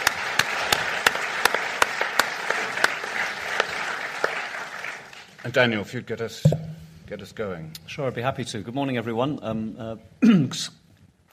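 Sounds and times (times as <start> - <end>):
audience applause for panel: 0.0 - 5.7
speech: 5.4 - 10.8.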